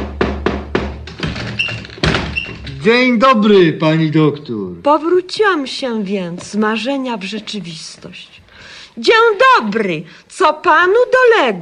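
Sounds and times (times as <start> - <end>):
knocking on a door: 0.0 - 2.8
speech: 2.8 - 8.4, 9.0 - 11.5.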